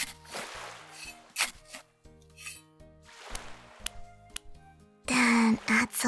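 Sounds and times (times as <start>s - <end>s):
sand being piled and squished down: 0.0s - 4.2s.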